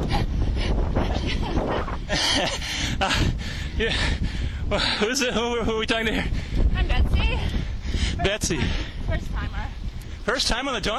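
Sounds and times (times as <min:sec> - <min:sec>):
heavy labored breathing of a cyclist on a climb: 0:00.0 - 0:05.1, 0:06.1 - 0:06.7, 0:07.4 - 0:09.1
wind buffeting the microphone: 0:00.0 - 0:10.9
speech: 0:02.4 - 0:07.0, 0:08.2 - 0:09.3, 0:10.3 - 0:10.9.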